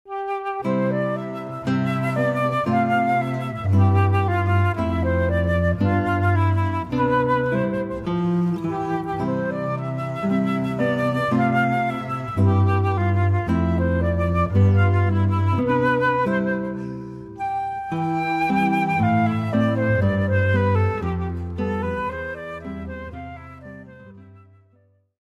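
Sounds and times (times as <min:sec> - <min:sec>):
guitar flute and bass trio: 0:00.1 - 0:24.9.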